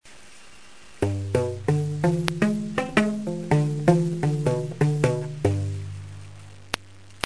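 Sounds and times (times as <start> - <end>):
guitar: 1.0 - 7.2.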